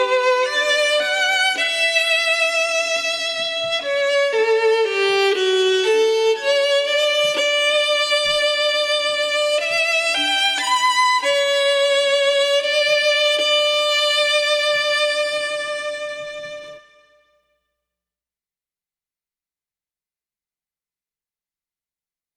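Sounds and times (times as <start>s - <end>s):
solo violin: 0.0s - 17.4s.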